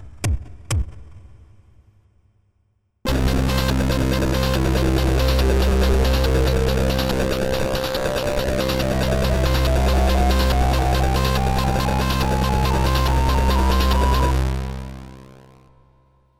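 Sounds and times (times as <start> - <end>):
midibox SID synthesizer wavetable sound: 3.1 - 15.7.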